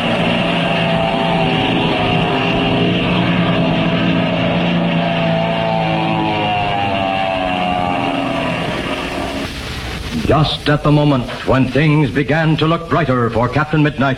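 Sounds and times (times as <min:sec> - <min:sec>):
plane diving with loud engine roar: 0:00.0 - 0:14.1
speech: 0:10.3 - 0:14.1.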